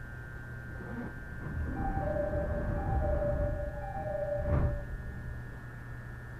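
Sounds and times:
whining tones: 0.7 - 5.3
rapid train rumbling on the Uchibo Line from Chiba to Kisarazu: 0.8 - 4.9
thin high tone: 1.6 - 4.9.

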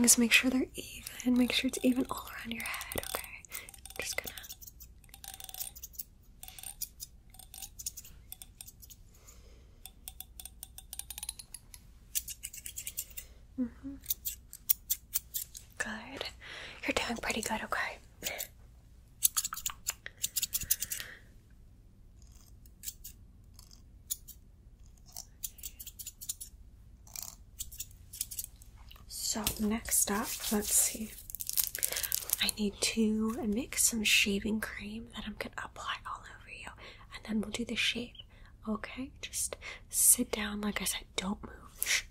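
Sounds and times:
speech: 0.0 - 3.2, 17.4 - 18.0, 29.6 - 31.2, 32.4 - 35.6, 37.3 - 41.6
faint whispering: 0.0 - 4.6, 13.6 - 14.1, 15.8 - 18.5, 34.6 - 42.1
scissors snipping hair: 1.0 - 9.0, 9.9 - 13.2, 14.0 - 15.6, 19.2 - 21.0, 22.2 - 28.5.

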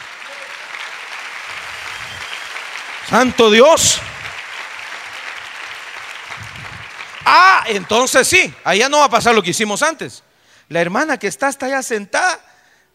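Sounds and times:
audience applause: 0.0 - 8.6
speech: 3.1 - 4.1, 7.3 - 12.4.

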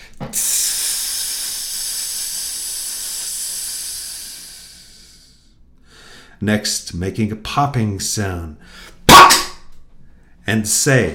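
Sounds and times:
voice making a long hissing sound: 0.3 - 5.6
speech: 6.4 - 8.9, 10.5 - 11.1.

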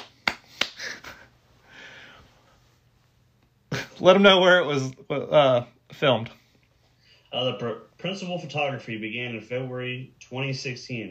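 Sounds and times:
hand claps: 0.0 - 1.2
faint breathy hiss: 1.6 - 2.6
speech: 4.0 - 6.4, 7.3 - 11.0.

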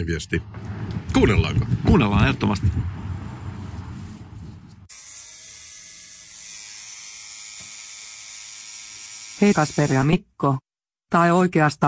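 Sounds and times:
speech: 0.0 - 3.0, 9.4 - 11.8
low rumbling murmur: 0.4 - 4.9
tattoo machine buzzing: 4.9 - 10.1.

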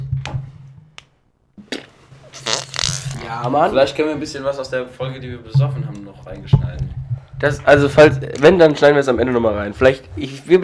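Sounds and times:
fart: 1.6 - 3.5
speech: 3.3 - 10.6.

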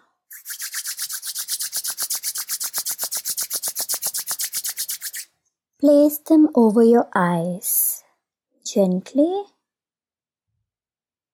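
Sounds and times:
palms rubbing together during a guided meditation: 0.3 - 5.3
speech: 5.8 - 7.9, 8.7 - 9.6.

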